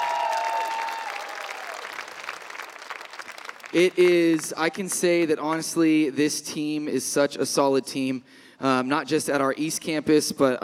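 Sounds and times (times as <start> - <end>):
audience applauding the worship band at an evening church gathering: 0.0 - 4.9
speech: 3.7 - 10.6.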